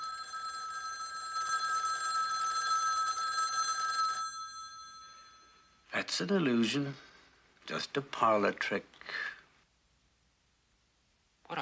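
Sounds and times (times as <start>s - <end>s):
telephone bell ringing: 0.0s - 5.9s
speech: 6.0s - 7.1s, 7.7s - 9.4s.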